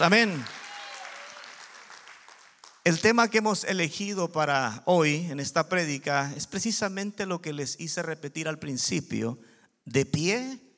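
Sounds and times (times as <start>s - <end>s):
speech: 0.0s - 0.6s, 2.8s - 10.6s
crowd applauding: 0.0s - 3.1s.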